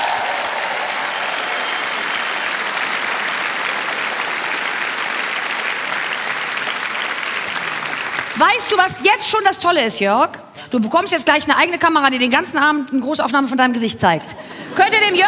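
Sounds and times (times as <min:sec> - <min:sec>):
audience applause: 0:00.0 - 0:08.7
speech: 0:08.5 - 0:15.2.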